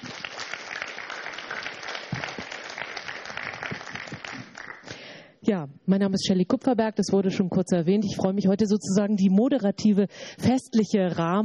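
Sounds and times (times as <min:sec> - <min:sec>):
audience applause: 0:00.0 - 0:04.9
speech: 0:05.5 - 0:11.4.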